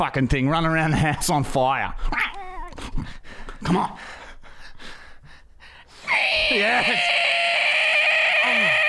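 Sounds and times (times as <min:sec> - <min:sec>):
speech: 0:00.0 - 0:02.3, 0:03.0 - 0:04.2, 0:06.2 - 0:07.3
person imitating a burning cat with a high-pitched screeching wail: 0:06.1 - 0:08.8.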